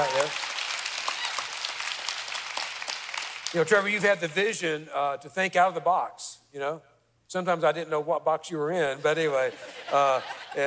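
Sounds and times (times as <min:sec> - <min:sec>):
audience applause: 0:00.0 - 0:03.6
speech: 0:03.5 - 0:10.6
laughter: 0:09.2 - 0:10.6.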